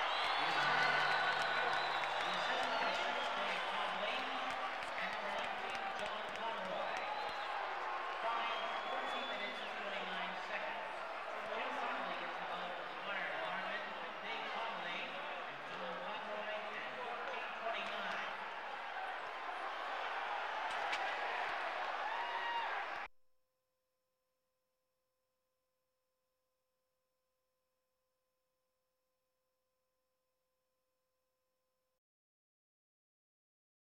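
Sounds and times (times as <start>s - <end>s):
sports crowd: 0.0s - 23.1s.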